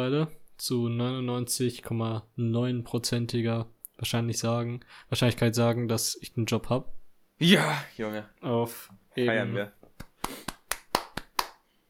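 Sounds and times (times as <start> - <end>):
speech: 0.0 - 9.8
hand clapping: 9.8 - 11.7.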